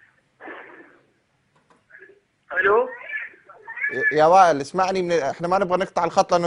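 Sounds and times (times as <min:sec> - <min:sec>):
television audio over a phone call: 0:00.0 - 0:01.1, 0:01.8 - 0:05.0
speech: 0:02.6 - 0:03.0, 0:03.9 - 0:06.4.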